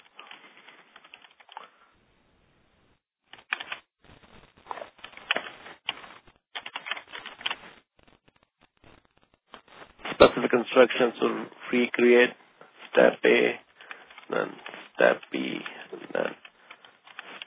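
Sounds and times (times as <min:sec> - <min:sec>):
rapid keystrokes on a computer keyboard: 0:00.9 - 0:01.6, 0:03.4 - 0:03.8, 0:06.6 - 0:07.6
speech: 0:10.4 - 0:12.4, 0:13.0 - 0:13.6, 0:14.3 - 0:15.5.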